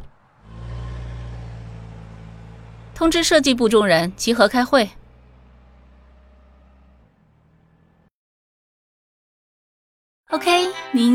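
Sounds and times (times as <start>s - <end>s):
car engine starting and driving off: 0.0s - 8.1s
speech: 3.0s - 5.0s.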